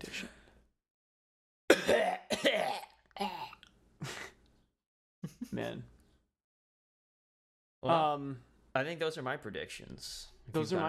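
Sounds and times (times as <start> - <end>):
coughing: 1.7 - 4.4
speech: 5.6 - 5.9, 7.8 - 10.8.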